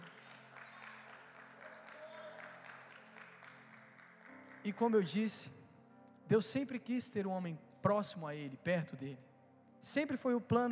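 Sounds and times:
audience applause: 0.0 - 5.0
speech: 4.6 - 5.6, 6.3 - 10.7.

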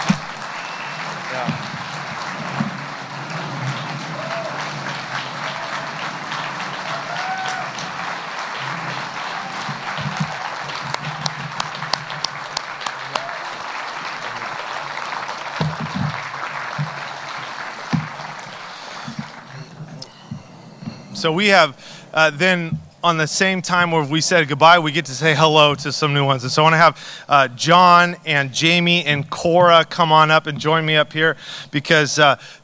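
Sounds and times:
crowd clapping: 0.0 - 21.7
speech: 21.2 - 32.6.

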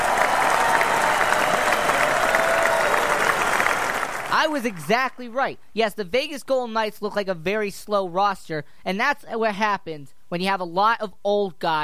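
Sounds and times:
applause: 0.0 - 5.0
speech: 4.4 - 11.8.

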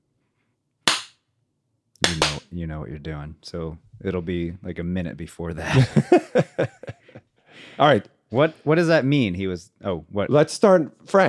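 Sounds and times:
hand clap for audio sync: 0.9 - 1.2, 2.0 - 2.4
speech: 2.1 - 7.0, 7.6 - 11.2
laughter: 5.6 - 7.2.

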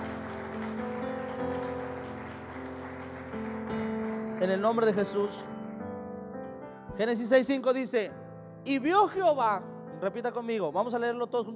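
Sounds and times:
audience applauding: 0.0 - 5.5
speech: 4.4 - 5.6, 7.0 - 11.5.

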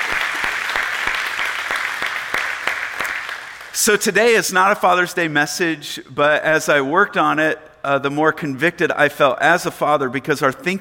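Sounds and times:
applause from a church congregation during a service: 0.0 - 3.8
speech: 3.8 - 10.7.

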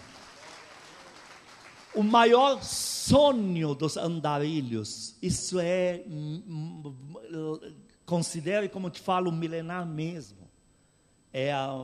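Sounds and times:
audience applauding: 0.0 - 2.4
speech: 2.0 - 10.4, 11.3 - 11.8.

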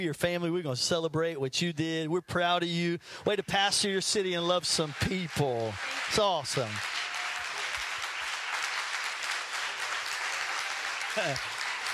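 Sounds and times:
speech: 0.0 - 7.1, 11.2 - 11.6
people applauding: 3.4 - 11.9.

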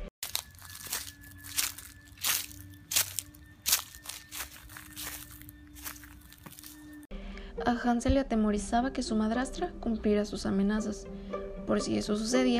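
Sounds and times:
footsteps crunching through dry autumn leaves: 0.0 - 7.1
speech: 7.6 - 12.5.

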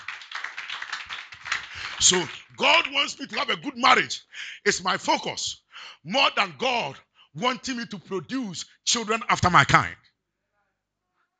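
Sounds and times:
audience clapping: 0.0 - 3.9
speech: 2.0 - 10.0.

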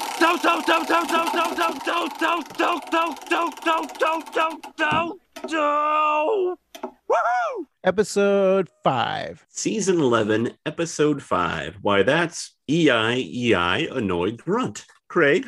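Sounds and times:
prize wheel spinning: 0.0 - 5.7
speech: 0.2 - 15.4.

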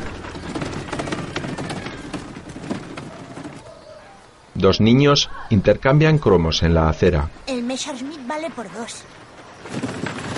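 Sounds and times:
cart loaded with suitcases and a wooden box dragged through a village street: 0.0 - 4.4, 7.2 - 10.3
speech: 4.6 - 9.8.

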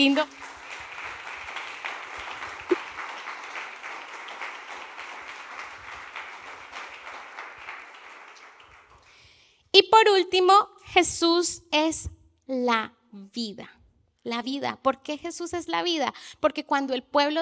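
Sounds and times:
speech: 0.0 - 0.5, 10.0 - 17.4
audience applause: 0.0 - 9.1.

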